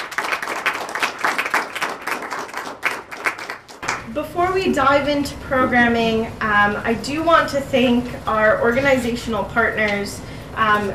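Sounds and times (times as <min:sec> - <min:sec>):
audience applause: 0:00.0 - 0:04.1
speech: 0:04.2 - 0:10.9.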